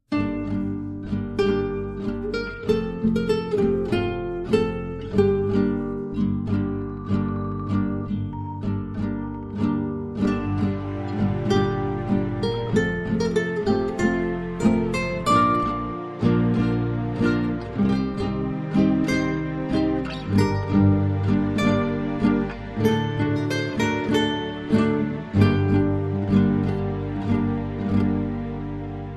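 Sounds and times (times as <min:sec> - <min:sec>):
acoustic music: 0:00.0 - 0:29.1.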